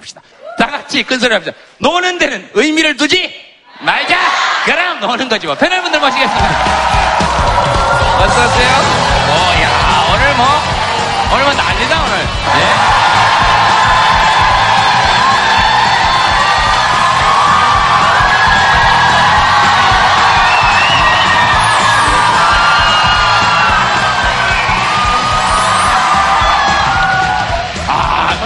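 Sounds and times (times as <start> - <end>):
speech: 0.9 - 9.4, 11.3 - 13.2
crowd cheering, whooping and yelling: 5.7 - 28.4.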